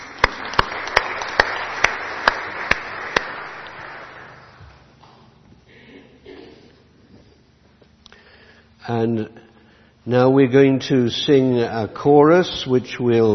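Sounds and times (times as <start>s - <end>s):
audience clapping: 0.0s - 5.1s
speech: 8.9s - 13.3s.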